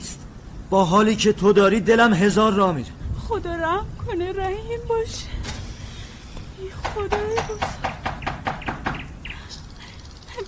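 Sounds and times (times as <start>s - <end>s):
speech: 0.7s - 5.5s, 6.6s - 8.0s
caged canaries chirping: 7.2s - 10.4s.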